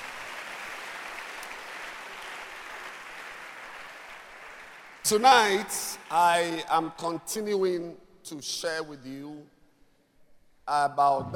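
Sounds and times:
church congregation clapping hands: 0:00.0 - 0:07.3
speech: 0:05.1 - 0:09.6, 0:10.7 - 0:11.3.

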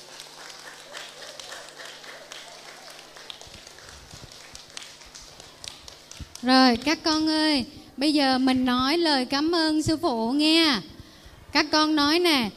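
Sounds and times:
loud round of applause: 0:00.0 - 0:06.5
speech: 0:06.4 - 0:10.9, 0:11.5 - 0:12.5.

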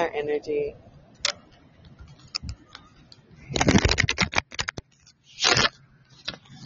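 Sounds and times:
deck of cards shuffled: 0:03.5 - 0:06.6.

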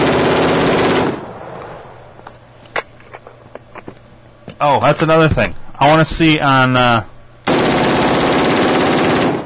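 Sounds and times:
rapid gunfire from a rifle: 0:00.0 - 0:01.5, 0:07.4 - 0:09.4
speech: 0:04.6 - 0:07.1.

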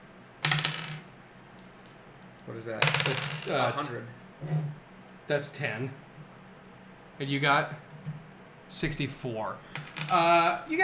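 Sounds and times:
hard plastic dice clattering across a tabletop: 0:00.4 - 0:03.7, 0:09.7 - 0:10.4
speech: 0:02.5 - 0:06.1, 0:07.2 - 0:10.8.

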